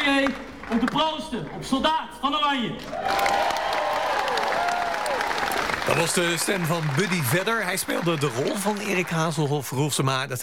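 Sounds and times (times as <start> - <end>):
theatre audience clapping after a final musical performance: 0.0 - 1.3, 2.8 - 10.1
speech: 0.2 - 3.6, 5.8 - 10.4
theatre audience cheering: 2.9 - 9.6.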